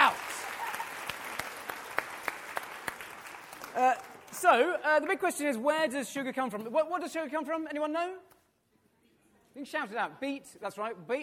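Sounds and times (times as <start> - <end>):
audience applause: 0.0 - 4.4
speech: 3.8 - 8.3, 9.6 - 11.2.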